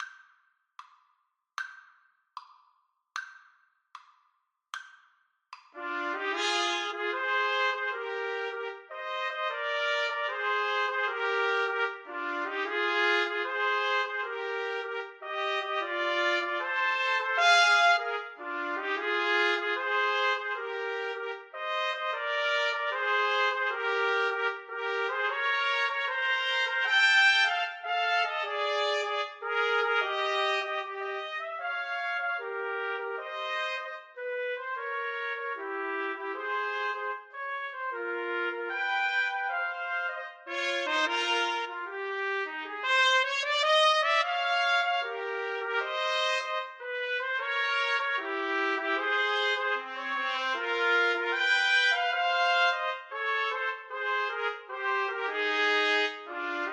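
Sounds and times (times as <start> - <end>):
trumpet trio playing: 5.8 - 56.7.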